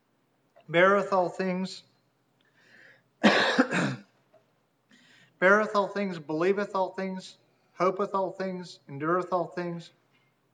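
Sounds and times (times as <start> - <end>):
speech: 0.7 - 1.9, 5.4 - 10.0
harsh cough from someone reading scripture aloud: 3.2 - 4.2.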